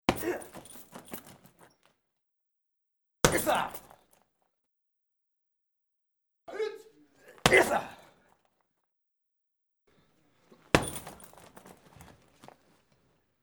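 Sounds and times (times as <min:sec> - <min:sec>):
karate side kicks: 0:00.1 - 0:01.2, 0:03.2 - 0:03.8, 0:07.4 - 0:08.0, 0:10.7 - 0:12.1.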